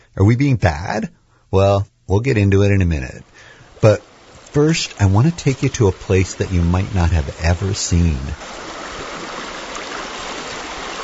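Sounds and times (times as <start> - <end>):
speech: 0.2 - 8.7
creek water flowing: 3.1 - 11.0.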